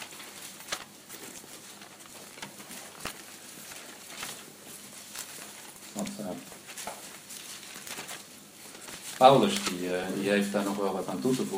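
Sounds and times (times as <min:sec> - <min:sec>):
pages of a book being turned: 0:00.0 - 0:11.5
speech: 0:06.1 - 0:06.6, 0:09.2 - 0:11.5.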